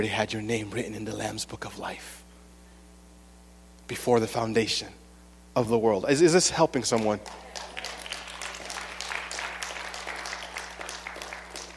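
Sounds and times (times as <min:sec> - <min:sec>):
speech: 0:00.0 - 0:02.2, 0:03.9 - 0:05.0, 0:05.6 - 0:07.7
faint low hum: 0:00.0 - 0:11.7
subdued polite audience applause: 0:06.9 - 0:11.7.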